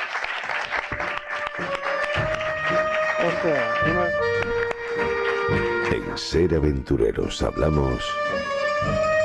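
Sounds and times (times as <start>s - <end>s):
audience applause: 0.0s - 6.1s
speech: 3.4s - 5.1s, 6.2s - 9.1s.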